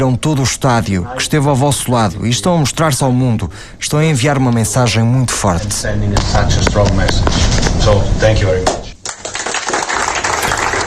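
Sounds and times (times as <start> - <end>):
speech: 0.0 - 8.8
Iran players applauding the FIFA president: 9.0 - 10.8.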